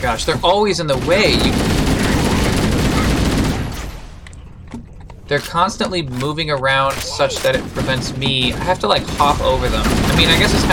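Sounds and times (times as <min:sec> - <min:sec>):
speech: 0:00.0 - 0:02.6, 0:04.7 - 0:10.7
video-game gunfire from Marines shooting at an enemy: 0:00.0 - 0:04.2, 0:07.1 - 0:10.7.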